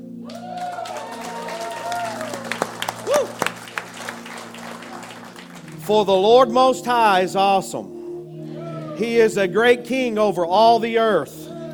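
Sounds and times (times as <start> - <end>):
audience clapping hands: 0.2 - 6.1
speech: 3.1 - 3.4, 5.9 - 8.0, 9.0 - 11.4.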